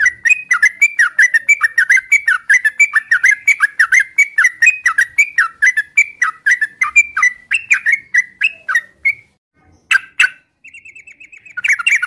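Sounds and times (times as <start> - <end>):
Oriental magpie-robin whistling: 0.0 - 12.0.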